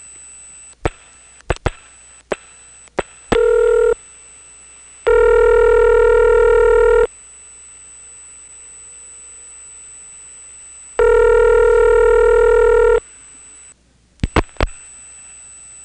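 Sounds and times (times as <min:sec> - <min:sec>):
faint high whine: 0:00.0 - 0:15.8
telephone dialing tones on a T-Carrier trunk line: 0:03.4 - 0:04.0, 0:05.1 - 0:07.1, 0:11.0 - 0:13.0.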